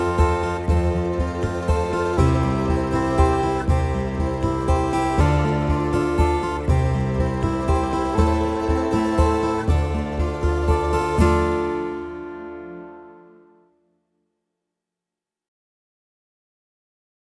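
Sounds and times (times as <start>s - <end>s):
folk backing on bassoon: 0.0s - 13.6s.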